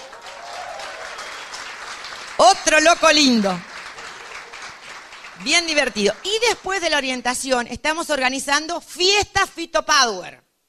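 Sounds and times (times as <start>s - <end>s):
audience applause: 0.0s - 7.1s
speech: 2.4s - 3.7s, 5.4s - 10.4s.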